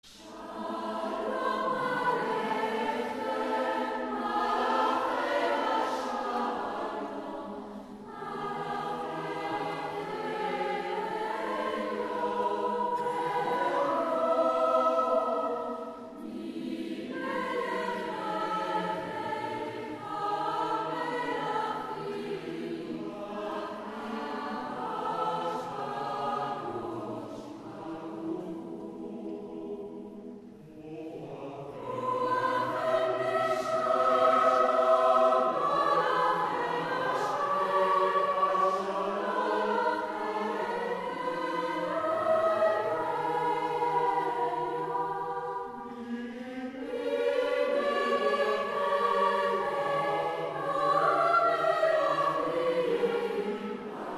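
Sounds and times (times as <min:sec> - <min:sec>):
choirs singing: 0:00.0 - 0:54.1.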